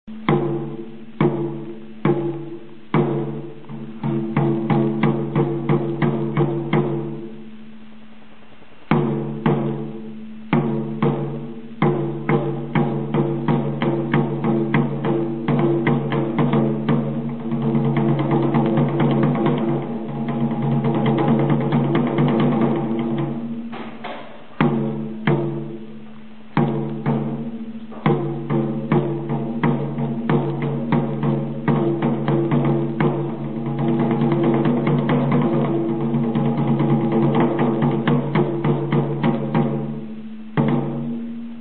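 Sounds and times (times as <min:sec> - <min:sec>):
taiko drums: 0:00.1 - 0:07.6, 0:08.9 - 0:41.5.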